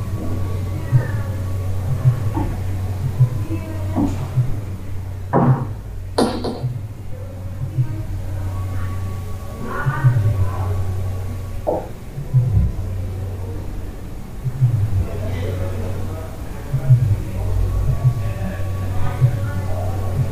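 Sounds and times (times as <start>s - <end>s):
faint higher whine: 0.0s - 20.3s
murmured voices: 0.0s - 20.3s
steady low hum in a hostel room: 0.0s - 20.3s
knocks and clatters: 5.4s - 6.8s.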